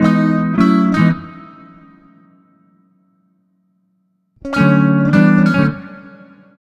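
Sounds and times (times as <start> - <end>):
electric guitar bossa nova: 0.0 - 2.3, 4.4 - 6.6.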